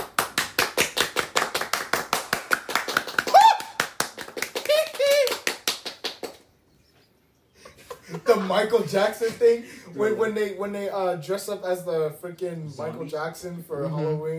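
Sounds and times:
applause, hand clapping: 0:00.0 - 0:06.5
laughter: 0:07.6 - 0:10.3
speech: 0:08.3 - 0:14.3.

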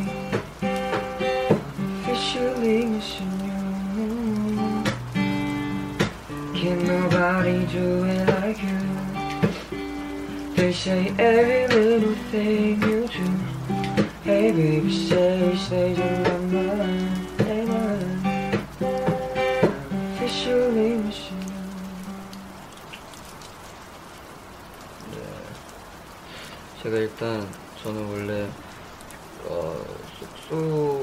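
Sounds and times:
person singing: 0:00.0 - 0:00.4, 0:01.8 - 0:05.0, 0:06.4 - 0:09.7, 0:10.5 - 0:18.6, 0:19.9 - 0:22.5
guitar strumming chords: 0:00.0 - 0:22.5
rain patter: 0:00.0 - 0:31.0.

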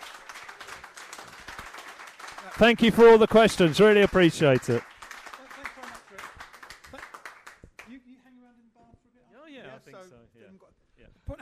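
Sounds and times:
audience applause: 0:00.0 - 0:07.9
speech: 0:02.6 - 0:04.9.

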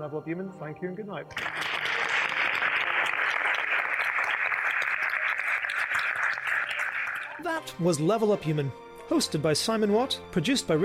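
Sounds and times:
speech: 0:00.0 - 0:01.8, 0:07.4 - 0:10.8
theatre audience applause at the AMI Theatre, Oxfordshire Science Festival: 0:01.3 - 0:07.5.

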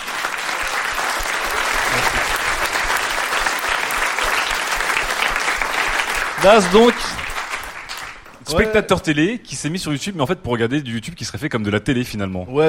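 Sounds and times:
crowd applauding: 0:00.0 - 0:08.8
speech: 0:06.4 - 0:07.2, 0:08.5 - 0:12.6.

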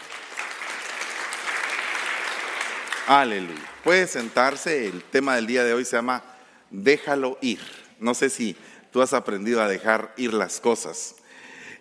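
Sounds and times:
audience applause: 0:00.0 - 0:05.5
speech: 0:03.1 - 0:11.2.

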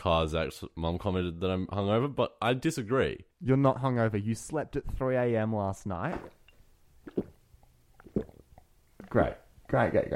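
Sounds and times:
speech: 0:00.0 - 0:06.4, 0:09.1 - 0:10.1
person gulping down water: 0:06.2 - 0:10.1.

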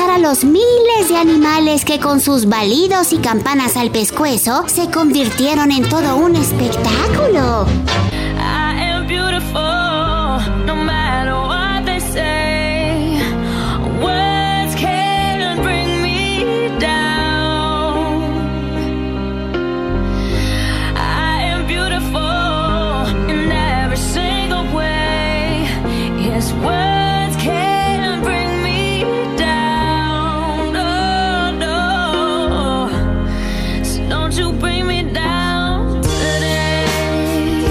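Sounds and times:
steady piano and backing instruments: 0:00.0 - 0:37.7
speech: 0:00.2 - 0:09.8
slow pop ballad sung by female vocalist: 0:08.2 - 0:19.0, 0:20.2 - 0:37.7.

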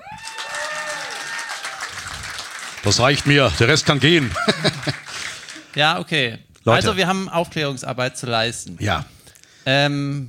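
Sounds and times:
audience clapping: 0:00.0 - 0:06.0
speech: 0:02.8 - 0:05.1, 0:05.8 - 0:10.2
laughter: 0:04.0 - 0:05.7.

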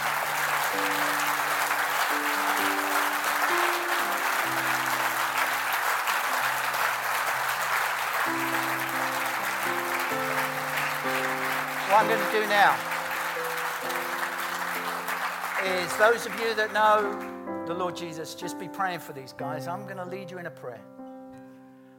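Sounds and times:
audience round of applause: 0:00.0 - 0:17.5
speech: 0:12.0 - 0:12.9, 0:15.6 - 0:21.0.

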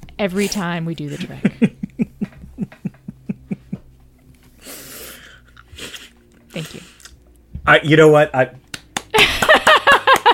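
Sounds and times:
speech: 0:00.2 - 0:01.7, 0:06.6 - 0:06.8, 0:07.7 - 0:08.6
laughter: 0:01.1 - 0:03.9, 0:09.1 - 0:10.3
hands clapping: 0:08.6 - 0:10.3.

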